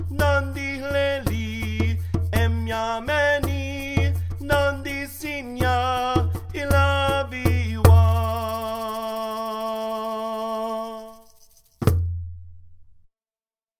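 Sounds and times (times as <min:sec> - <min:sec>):
tenor voice singing: 0:00.0 - 0:11.3.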